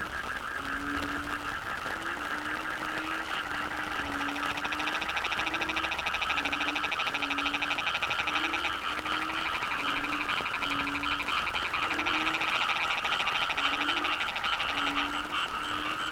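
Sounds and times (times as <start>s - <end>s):
Yamaha frogs in Cherating wetlands seaside village: 0.0s - 16.1s.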